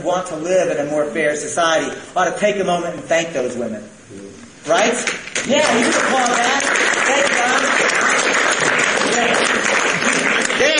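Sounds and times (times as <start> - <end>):
speech: 0.0 - 7.6
audience applause: 5.5 - 10.7.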